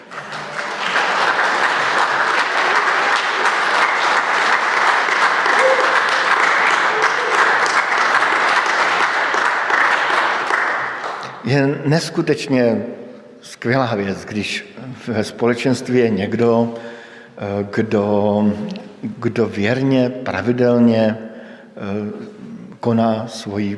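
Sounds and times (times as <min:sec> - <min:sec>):
audience applause: 0:00.0 - 0:11.4
speech: 0:11.5 - 0:21.2, 0:22.8 - 0:23.7.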